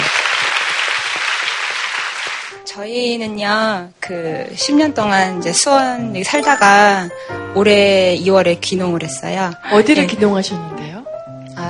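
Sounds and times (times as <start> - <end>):
audience applause: 0.0 - 2.6
speech: 2.8 - 10.9.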